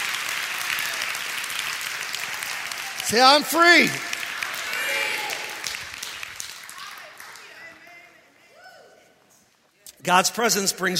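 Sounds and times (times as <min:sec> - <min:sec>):
church congregation clapping hands in praise: 0:00.0 - 0:08.2
speech: 0:03.1 - 0:04.1, 0:10.1 - 0:10.9.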